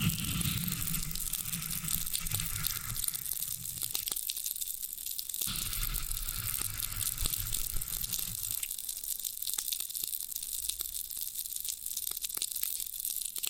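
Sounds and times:
low rubbing rumble: 0:00.0 - 0:04.1, 0:05.5 - 0:08.7
floral foam crackling and crunching: 0:00.0 - 0:04.4, 0:05.4 - 0:09.4.

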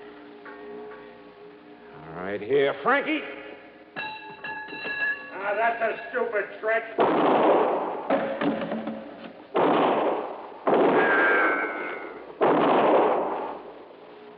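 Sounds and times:
speech: 0:02.3 - 0:03.4, 0:05.5 - 0:07.6
gunshots in an old radio crime drama: 0:07.0 - 0:13.9.

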